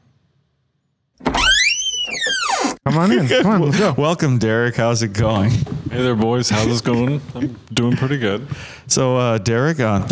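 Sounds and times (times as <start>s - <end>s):
door opening: 1.2s - 2.8s
laughter: 2.8s - 8.7s
speech: 2.9s - 10.1s.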